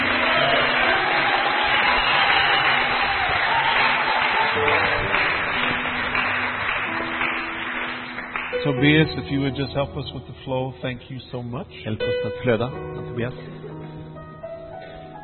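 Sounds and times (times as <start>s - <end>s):
audience applause: 0.0s - 8.7s
speech: 8.8s - 13.7s.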